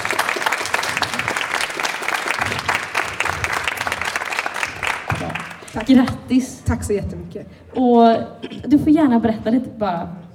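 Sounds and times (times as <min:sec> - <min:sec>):
audience applause: 0:00.0 - 0:06.0
speech: 0:05.8 - 0:10.2.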